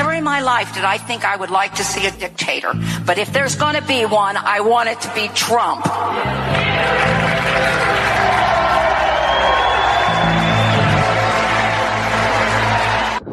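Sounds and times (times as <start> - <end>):
speech: 0.2 - 8.5
crowd applause at a rally: 5.9 - 13.3.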